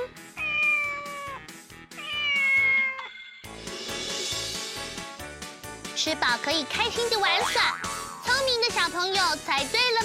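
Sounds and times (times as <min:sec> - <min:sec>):
cat meowing: 0:00.4 - 0:03.1
steady rhythmic music track: 0:03.5 - 0:09.0
speech: 0:06.0 - 0:10.0.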